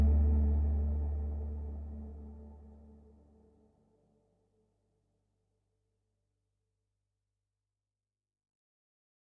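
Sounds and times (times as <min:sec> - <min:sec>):
mystic oud playing: 0:00.0 - 0:01.9.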